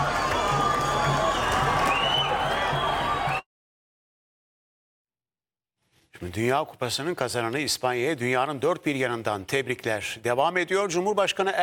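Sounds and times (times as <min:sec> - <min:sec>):
thousands of Palestinians cheering Spain's World Cup win around giant screens: 0:00.0 - 0:03.5
speech: 0:06.2 - 0:11.6.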